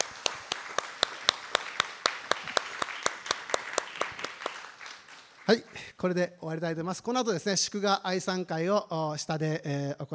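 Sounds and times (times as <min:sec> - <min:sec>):
congratulatory applause from audience: 0:00.0 - 0:05.9
speech: 0:05.5 - 0:10.1.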